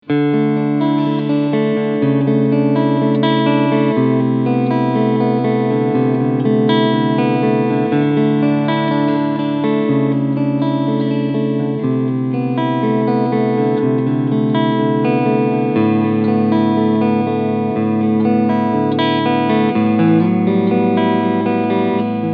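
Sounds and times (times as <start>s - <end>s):
FGN Boundary Iliad electric guitar, clean sound, front humbucker: 0.0s - 22.3s.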